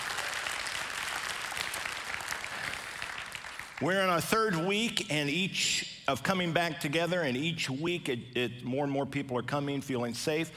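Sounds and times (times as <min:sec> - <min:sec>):
audience applause: 0:00.0 - 0:03.8
speech: 0:03.8 - 0:10.5.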